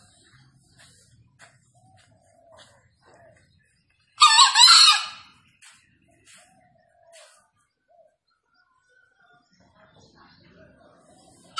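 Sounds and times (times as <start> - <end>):
green junglefowl giving a hoarse crow: 4.2 - 5.4.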